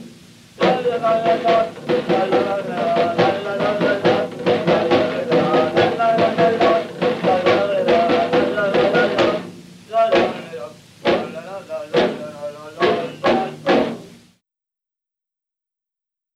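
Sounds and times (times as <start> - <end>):
Paloteo stick dance: 0.6 - 9.5, 10.1 - 14.2.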